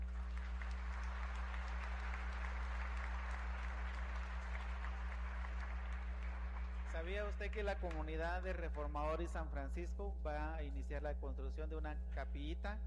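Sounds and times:
audience applause: 0.0s - 7.6s
low electrical hum: 0.0s - 12.8s
speech: 7.0s - 12.8s.

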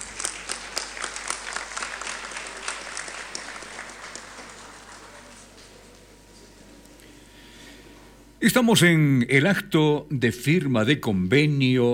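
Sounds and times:
audience applause: 0.0s - 5.6s
speech: 8.4s - 11.9s.

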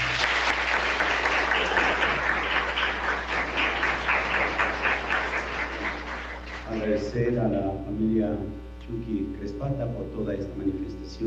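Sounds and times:
audience applause: 0.0s - 7.0s
speech: 7.1s - 11.2s.

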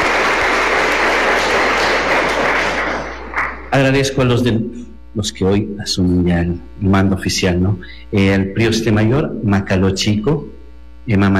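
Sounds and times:
audience applause: 0.0s - 3.8s
speech: 3.7s - 11.3s.

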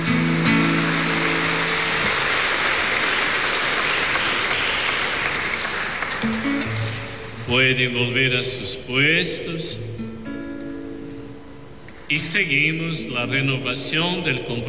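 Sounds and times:
audience applause: 0.0s - 7.3s
speech: 7.5s - 9.9s, 12.1s - 14.6s.

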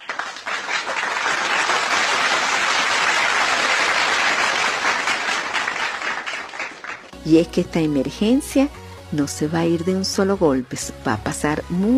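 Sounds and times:
applause: 0.0s - 7.2s
speech: 7.3s - 11.9s.

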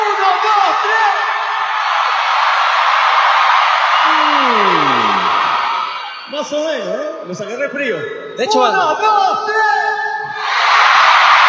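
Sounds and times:
audience shouting and cheering: 0.0s - 7.1s, 10.2s - 11.4s
person whooping in a long downward-sliding whoop: 4.0s - 6.1s
speech: 6.4s - 10.0s.

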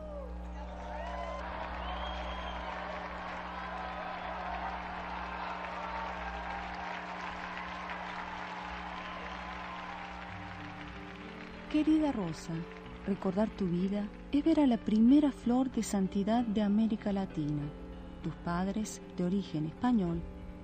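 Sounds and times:
cheers and whoops: 0.0s - 11.0s
crowd applauding: 0.0s - 14.3s
speech: 11.7s - 20.6s.

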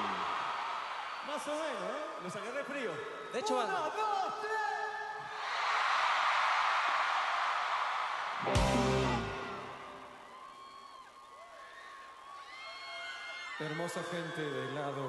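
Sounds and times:
section of a crowd roaring and cheering: 0.0s - 3.0s, 5.2s - 15.0s
speech: 1.4s - 4.8s, 13.6s - 15.0s.

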